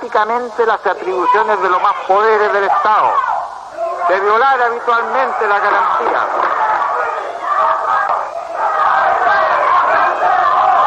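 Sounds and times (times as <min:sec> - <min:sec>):
speech: 0:00.0 - 0:03.3, 0:04.1 - 0:06.6
women shouting in a hall: 0:01.2 - 0:04.1, 0:05.3 - 0:10.8.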